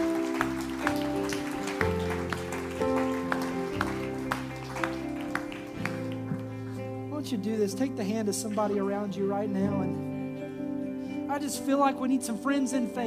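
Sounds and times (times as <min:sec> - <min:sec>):
audience applause: 0:00.0 - 0:06.9
speech: 0:07.3 - 0:10.1, 0:11.4 - 0:13.0.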